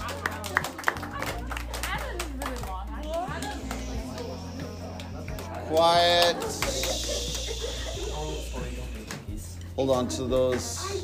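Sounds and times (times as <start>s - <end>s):
class applause: 0.0s - 7.9s
laughter: 3.3s - 9.2s
speech: 5.7s - 6.9s, 9.8s - 11.0s.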